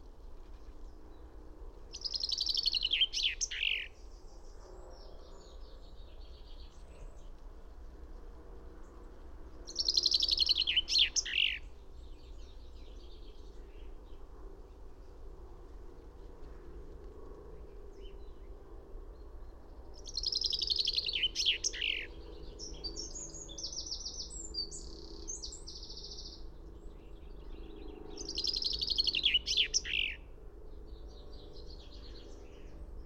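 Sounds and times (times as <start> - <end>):
faint bird chirps: 1.9 - 4.0, 9.7 - 11.6, 20.0 - 26.4, 27.6 - 30.2
finch trilling song: 2.0 - 3.9, 9.7 - 11.6, 20.1 - 26.3, 28.2 - 30.2.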